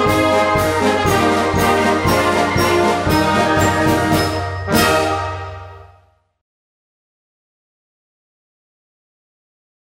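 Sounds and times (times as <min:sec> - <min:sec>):
freedom bells ringing: 0:01.1 - 0:06.1.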